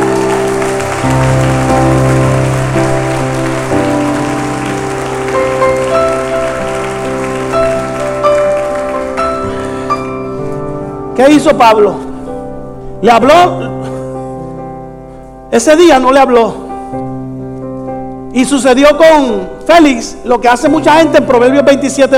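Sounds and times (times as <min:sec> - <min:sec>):
audience applauding: 0:00.0 - 0:10.6
sustained keyboard chords: 0:00.0 - 0:22.1
speech: 0:11.2 - 0:12.1, 0:13.0 - 0:13.6, 0:15.5 - 0:16.6, 0:18.4 - 0:22.1.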